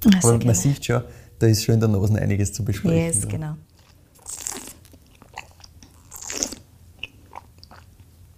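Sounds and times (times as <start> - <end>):
speech: 0.0 - 3.7
sipping and slurping 2019 wine: 3.8 - 7.9.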